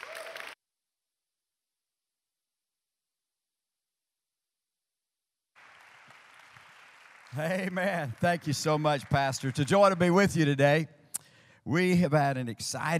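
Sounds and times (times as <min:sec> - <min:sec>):
church audience applause welcoming a guest pastor: 0:00.0 - 0:00.6, 0:05.6 - 0:10.6
speech: 0:07.3 - 0:11.0, 0:11.6 - 0:12.9.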